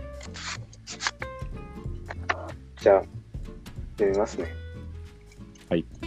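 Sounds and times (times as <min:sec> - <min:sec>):
letter being pulled out of an envelope: 0:00.2 - 0:01.1
speech: 0:02.8 - 0:03.1, 0:04.0 - 0:04.6, 0:05.7 - 0:05.9.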